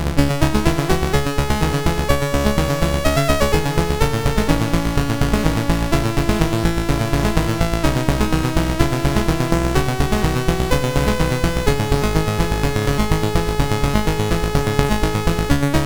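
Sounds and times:
SID chip MOS6581R4 music: 0.1s - 15.8s.

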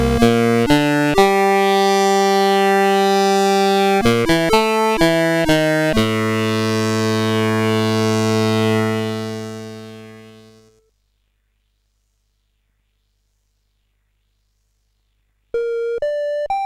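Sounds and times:
8-bit SID CSG8580R5 chiptune music: 0.0s - 10.7s, 15.6s - 16.6s.

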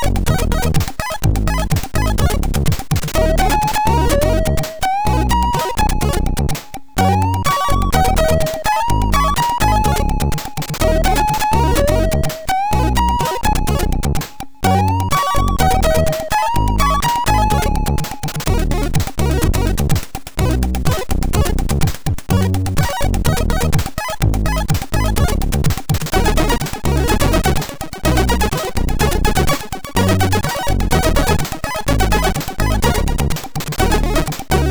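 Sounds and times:
MOS6581R2 SID sound chip synthesizer: 0.0s - 34.7s.

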